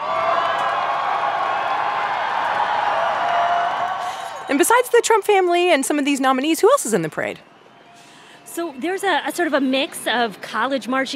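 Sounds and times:
people clapping: 0.0 - 5.2
people whooping: 0.0 - 5.7
large crowd roaring and cheering: 0.0 - 5.8
speech: 4.5 - 7.5, 8.6 - 11.1.

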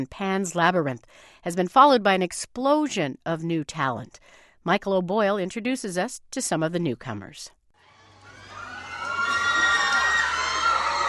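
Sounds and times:
speech: 0.0 - 7.6
young fans screaming at red carpet: 7.8 - 11.0.

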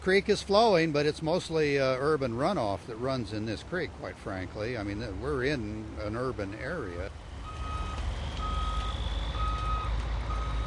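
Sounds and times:
speech: 0.0 - 7.2
construction vehicle engine rumbling: 0.0 - 10.6
construction vehicle reversing alarm beeps: 7.4 - 10.6.

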